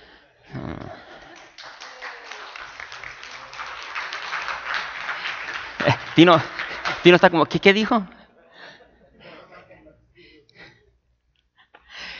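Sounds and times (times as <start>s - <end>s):
laughter: 0.4s - 10.8s
crowd applause: 1.2s - 8.0s
speech: 5.8s - 8.1s.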